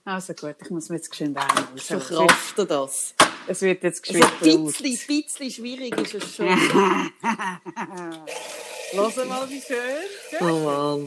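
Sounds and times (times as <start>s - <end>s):
speech: 0.1s - 11.0s
laughter: 1.8s - 2.3s, 4.1s - 4.9s, 6.3s - 8.2s, 9.0s - 9.7s, 10.4s - 11.0s
coffee machine brewing: 8.3s - 10.6s.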